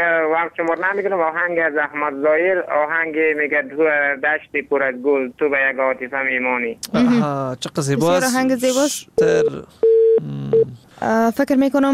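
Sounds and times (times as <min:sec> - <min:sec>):
speech: 0:00.0 - 0:10.4, 0:11.0 - 0:11.9
phone line tone after a caller's call cut off: 0:09.2 - 0:10.7.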